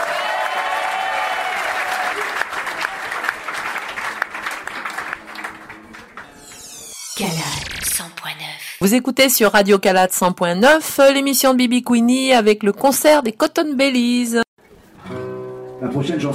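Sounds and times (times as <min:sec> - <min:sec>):
audience applause: 0:00.0 - 0:06.8
speech: 0:08.8 - 0:14.4, 0:15.8 - 0:16.3.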